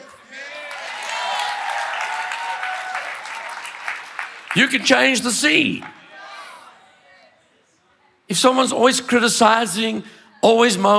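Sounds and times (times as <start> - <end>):
audience clapping: 0.0 - 6.1
speech: 4.5 - 6.0, 8.3 - 10.9.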